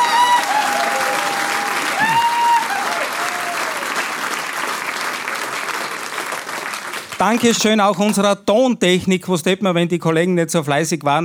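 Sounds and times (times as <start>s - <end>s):
people whooping and cheering: 0.0s - 4.5s
audience applause: 0.0s - 7.6s
speech: 7.2s - 11.2s.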